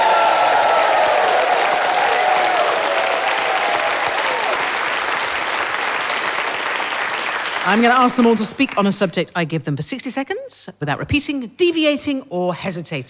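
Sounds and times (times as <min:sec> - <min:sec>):
audience whooping and cheering: 0:00.0 - 0:07.7
loud steady applause from a large crowd: 0:00.0 - 0:08.8
speech: 0:07.7 - 0:13.0.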